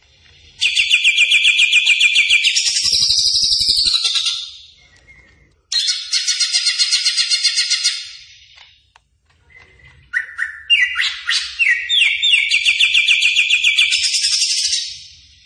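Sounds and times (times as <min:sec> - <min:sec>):
greater green leafbird song: 0:00.0 - 0:08.7, 0:09.4 - 0:15.4.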